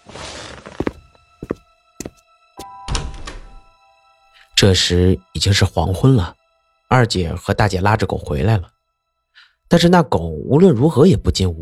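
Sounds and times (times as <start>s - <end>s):
door being opened: 2.8s - 3.6s
speech: 4.6s - 8.8s, 9.7s - 11.6s.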